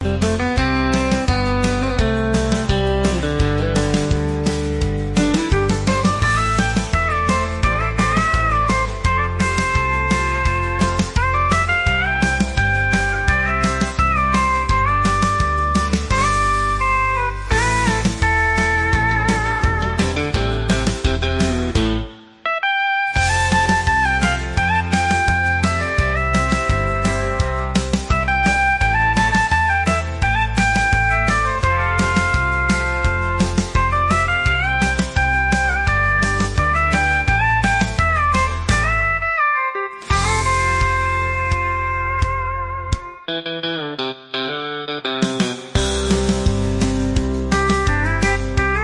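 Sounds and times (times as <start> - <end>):
country music: 0.0 - 48.8.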